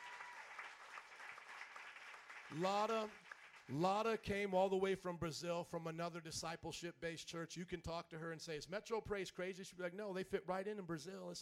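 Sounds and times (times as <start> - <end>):
audience clapping hands: 0.0 - 4.4
speech: 2.5 - 11.3.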